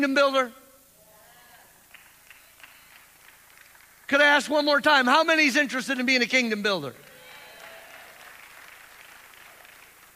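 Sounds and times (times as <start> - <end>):
speech: 0.0 - 0.6, 4.1 - 7.0
audience clapping: 1.9 - 4.3, 7.0 - 10.1.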